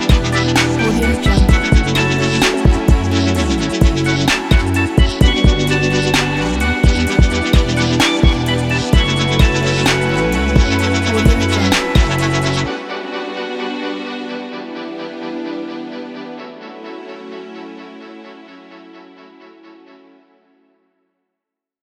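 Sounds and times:
drone flying: 0.0 - 16.8.

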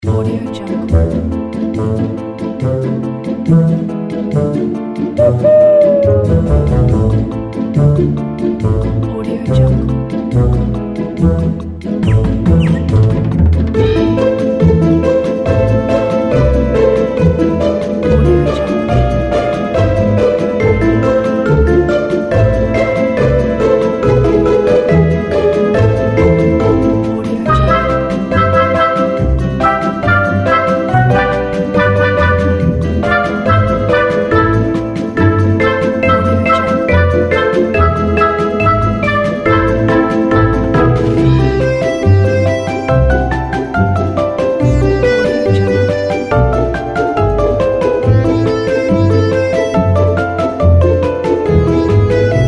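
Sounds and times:
cute kids holiday music: 0.0 - 52.4.

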